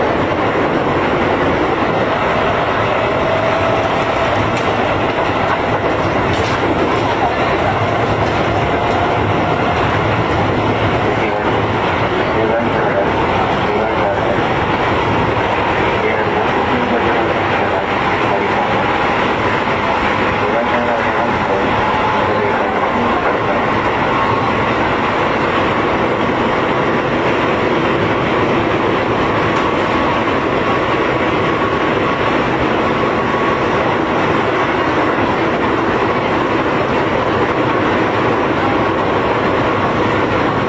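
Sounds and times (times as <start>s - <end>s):
Keio 8000 series train running between Seiseki-Sakuragaoka and Bubaigawara: 0.0s - 40.6s.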